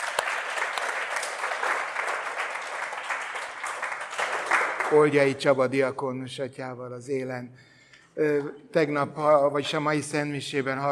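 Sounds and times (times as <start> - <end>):
audience applause: 0.0 - 5.4
speech: 4.9 - 10.9.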